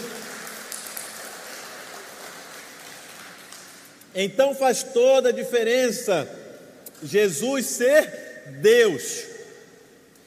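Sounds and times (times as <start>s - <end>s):
audience applauding: 0.0s - 4.0s
speech: 4.2s - 6.4s, 7.0s - 9.3s.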